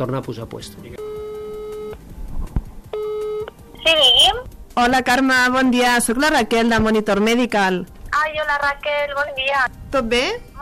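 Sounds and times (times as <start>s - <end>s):
speech: 0.0s - 1.0s, 4.8s - 10.5s
outgoing telephone call ringing tone: 1.0s - 2.0s, 3.0s - 4.4s.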